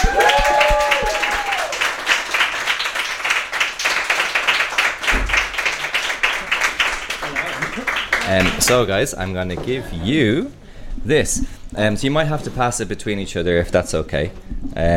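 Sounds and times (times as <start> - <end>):
live audience applause: 0.0 - 8.9
speech: 8.6 - 14.9.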